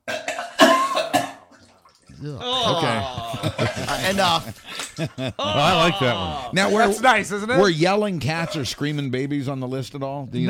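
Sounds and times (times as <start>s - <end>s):
person vomiting with retching heaves: 2.1s - 4.5s, 5.2s - 7.0s
speech: 2.2s - 10.4s
laughter: 2.4s - 7.5s.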